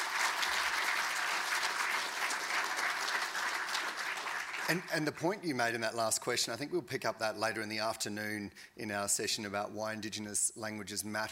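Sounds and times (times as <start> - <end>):
audience applause: 0.0 - 5.1
speech: 4.7 - 11.3.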